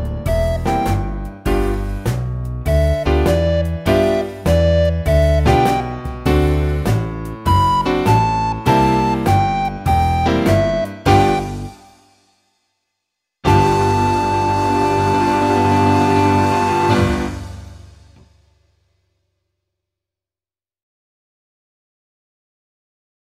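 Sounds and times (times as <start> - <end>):
blues practice music: 0.0 - 12.0, 13.4 - 18.2.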